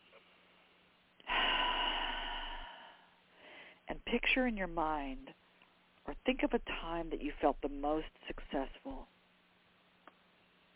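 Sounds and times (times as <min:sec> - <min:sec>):
deep breath during a guided relaxation exercise: 0:01.2 - 0:03.9
speech: 0:04.1 - 0:05.4, 0:06.1 - 0:09.1.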